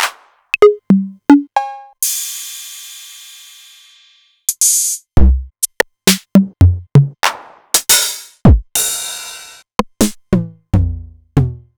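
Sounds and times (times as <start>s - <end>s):
Novation Drumstation drum machine: 0.0s - 2.2s, 4.5s - 11.6s.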